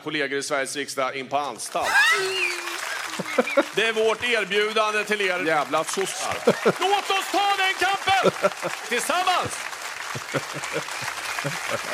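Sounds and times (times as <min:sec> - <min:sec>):
speech: 0:00.0 - 0:11.9
applause: 0:01.7 - 0:11.9
laughter: 0:01.8 - 0:04.4, 0:05.8 - 0:11.9.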